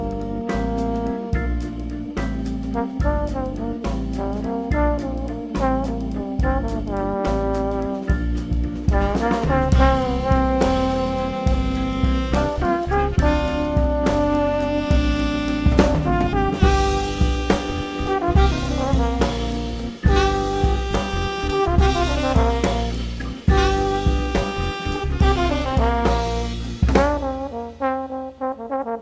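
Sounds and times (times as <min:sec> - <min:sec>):
blues band playing: 0:00.0 - 0:28.9.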